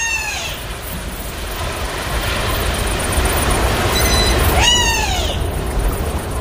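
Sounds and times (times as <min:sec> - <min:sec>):
steady rushing background: 0:00.0 - 0:06.4
faint peep: 0:03.9 - 0:05.5
wader calling, possibly redshank: 0:03.9 - 0:05.5.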